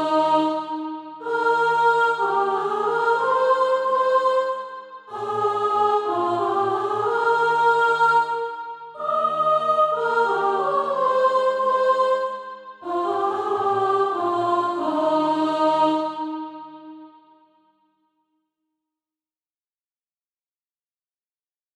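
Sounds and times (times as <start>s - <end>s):
soprano singing SATB practice music: 0.0s - 17.1s.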